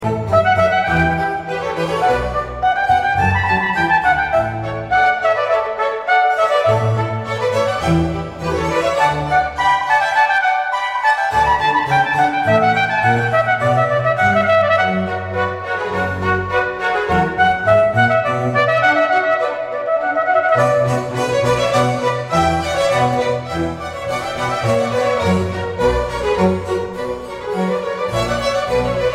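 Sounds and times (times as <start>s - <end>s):
trumpet concerto in D: 0.0s - 29.1s.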